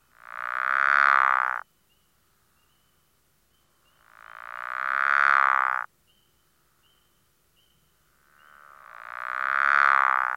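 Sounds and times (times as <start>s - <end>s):
pickerel frog snore-like croak: 0.0s - 1.7s, 3.7s - 5.9s, 8.0s - 10.3s.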